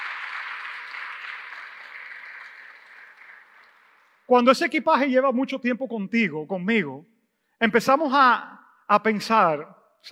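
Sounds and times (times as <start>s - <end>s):
audience applauding: 0.0s - 4.3s
speech: 4.3s - 10.1s.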